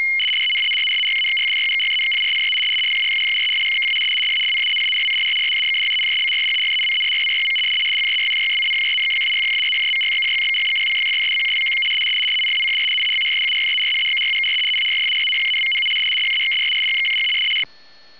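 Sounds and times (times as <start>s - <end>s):
RTTY 150 baud radioteletype signal: 0.1s - 17.7s.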